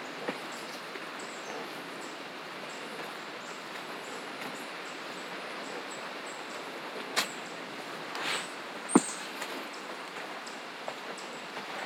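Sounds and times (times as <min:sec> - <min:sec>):
variety of bird calls: 0:00.0 - 0:11.5
dense hiss of insects and rustling: 0:00.0 - 0:11.8.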